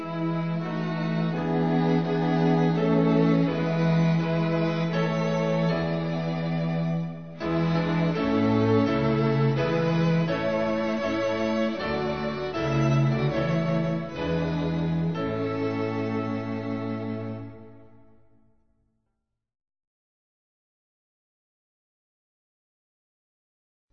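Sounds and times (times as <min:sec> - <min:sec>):
instrumental hymn: 0:00.0 - 0:18.4.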